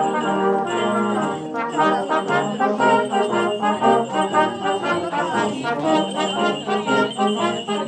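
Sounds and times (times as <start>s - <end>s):
brass instruments practising: 0.0s - 7.8s.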